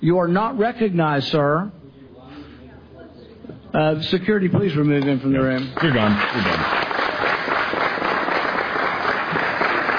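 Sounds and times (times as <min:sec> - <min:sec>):
speech: 0:00.0 - 0:01.8, 0:03.7 - 0:06.8
audience applause: 0:05.6 - 0:09.9.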